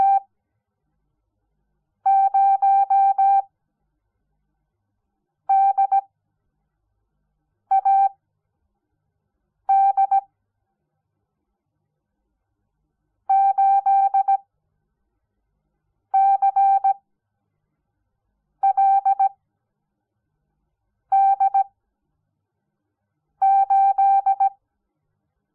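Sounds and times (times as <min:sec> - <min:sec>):
morse code beeps: 0:02.1 - 0:03.4, 0:05.5 - 0:06.0, 0:07.7 - 0:08.1, 0:09.7 - 0:10.2, 0:13.3 - 0:14.4, 0:16.2 - 0:17.0, 0:18.6 - 0:19.3, 0:21.2 - 0:21.7, 0:23.4 - 0:24.6.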